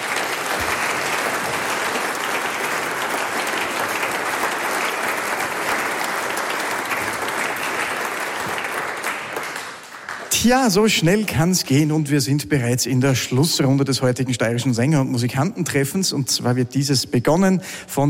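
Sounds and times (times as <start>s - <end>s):
audience applause: 0.0s - 11.3s
speech: 10.4s - 18.0s.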